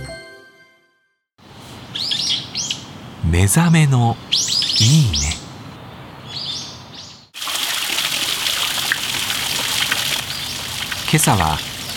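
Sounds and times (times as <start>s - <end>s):
birds chirping: 1.9s - 7.3s, 10.2s - 11.9s
speech: 3.3s - 5.4s, 11.1s - 11.7s
running water from a shishi-odoshi bamboo fountain: 7.4s - 11.9s.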